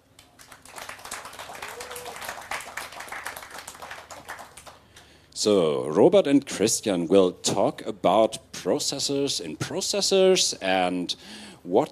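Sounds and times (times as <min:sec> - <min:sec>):
audience applause: 0:00.4 - 0:04.8
speech: 0:05.4 - 0:11.8.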